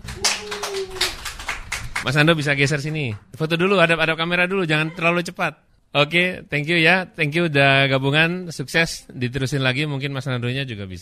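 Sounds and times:
audience clapping hands: 0:00.0 - 0:03.3
speech: 0:02.0 - 0:11.0.

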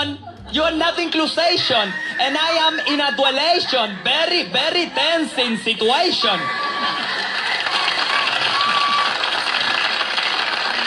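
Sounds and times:
laughter: 0:00.0 - 0:10.8
speech: 0:00.3 - 0:07.0
applause: 0:06.6 - 0:10.8.

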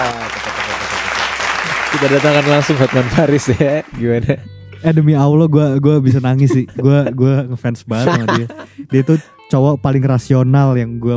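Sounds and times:
crowd hand clapping: 0:00.0 - 0:04.0
laughter: 0:01.6 - 0:04.6, 0:06.0 - 0:09.4
speech: 0:02.0 - 0:11.1.

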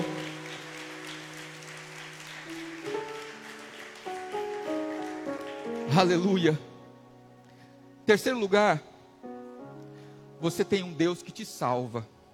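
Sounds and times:
audience applause: 0:00.0 - 0:06.6
sustained organ or keyboard chords: 0:00.0 - 0:12.3
speech: 0:05.9 - 0:06.7, 0:08.1 - 0:08.9, 0:10.4 - 0:12.2.

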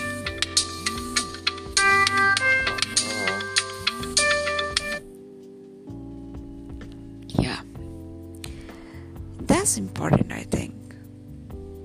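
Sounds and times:
alarm going off with a repeating electronic melody: 0:00.0 - 0:05.1
speech: 0:09.8 - 0:10.8.

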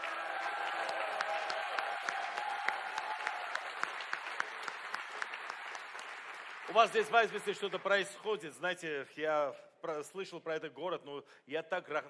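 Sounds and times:
audience applause: 0:00.0 - 0:08.2
speech: 0:06.8 - 0:12.0.

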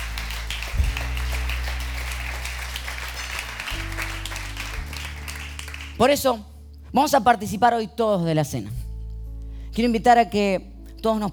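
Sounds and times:
audience applause: 0:00.0 - 0:06.1
speech: 0:06.0 - 0:08.8, 0:09.7 - 0:11.3.

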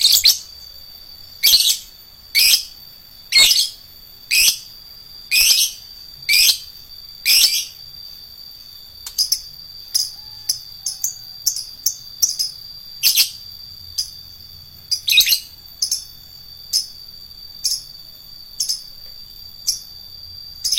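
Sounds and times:
lovebird shrill chirps: 0:00.0 - 0:00.6, 0:01.4 - 0:04.7, 0:05.3 - 0:07.8, 0:09.1 - 0:13.4, 0:14.9 - 0:17.0.

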